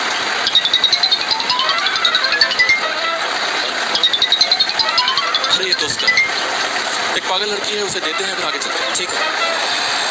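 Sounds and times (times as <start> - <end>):
mobile phone ringing: 0.4 - 6.7
speech: 7.2 - 9.9.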